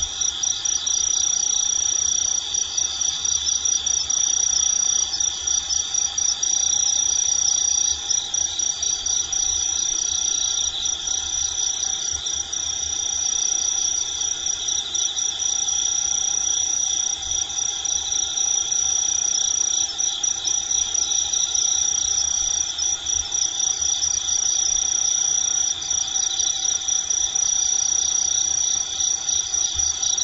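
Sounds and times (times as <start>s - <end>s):
Kinhibari cricket trilling: 0.0s - 30.2s.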